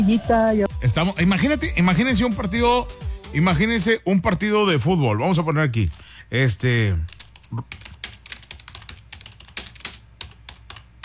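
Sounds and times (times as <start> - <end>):
speech: 0.0 - 7.8
typing on a computer keyboard: 7.1 - 11.0.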